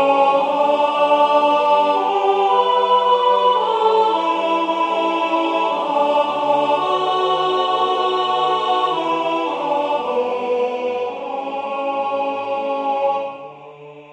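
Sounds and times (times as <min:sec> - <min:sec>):
alto voice singing a choral piece: 0:00.0 - 0:14.1.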